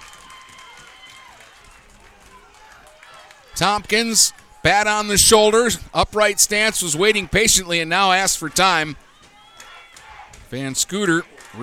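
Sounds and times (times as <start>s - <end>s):
crowd of fans clapping: 0.0s - 11.6s
indistinct voices: 2.2s - 11.6s
speech: 3.6s - 9.0s, 10.5s - 11.6s
fans stomping on metal bleachers: 8.3s - 10.6s.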